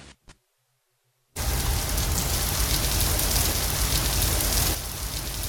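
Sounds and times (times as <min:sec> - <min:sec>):
showerhead spraying water: 0:01.4 - 0:05.4.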